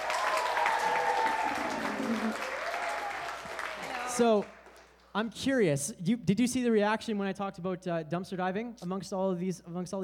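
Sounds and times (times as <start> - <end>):
audience applause: 0.0 - 4.8
speech: 4.2 - 4.6, 5.2 - 10.0.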